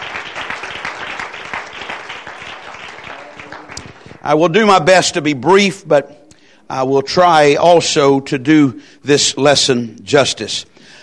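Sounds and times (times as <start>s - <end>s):
crowd applauding: 0.0s - 4.3s
speech: 4.2s - 10.7s.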